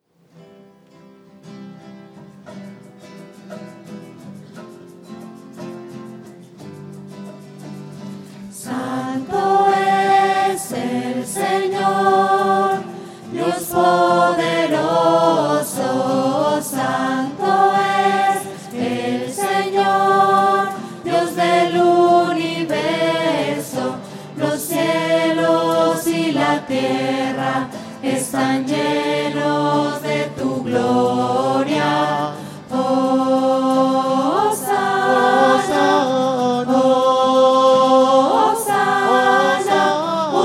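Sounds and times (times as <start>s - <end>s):
voices: 8.6s - 40.4s.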